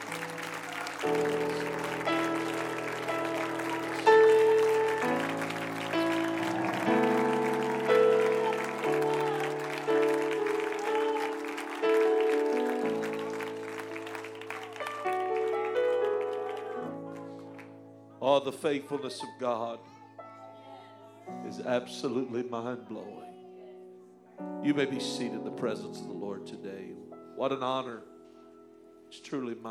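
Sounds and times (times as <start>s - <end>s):
audience clap offering of praise: 0.0s - 17.8s
speech: 1.0s - 1.7s, 18.4s - 19.9s, 21.6s - 23.3s, 24.6s - 28.1s, 29.1s - 29.6s.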